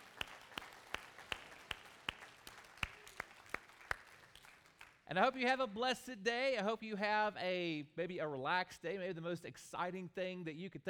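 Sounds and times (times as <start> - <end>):
audience clapping: 0.0 - 5.1
speech: 5.1 - 10.8.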